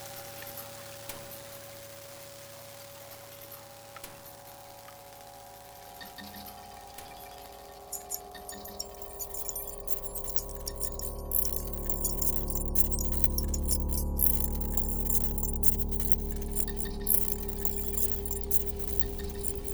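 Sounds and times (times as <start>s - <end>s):
static: 8.7s - 19.7s.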